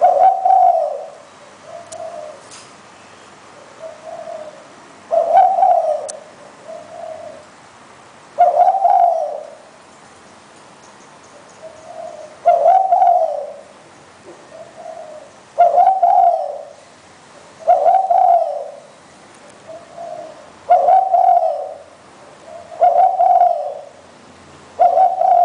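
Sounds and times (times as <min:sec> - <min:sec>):
spotted dove cooing: 0:00.0 - 0:02.5, 0:03.5 - 0:07.5, 0:08.4 - 0:09.7, 0:11.3 - 0:16.8, 0:17.4 - 0:18.9, 0:19.5 - 0:24.0, 0:24.8 - 0:25.4.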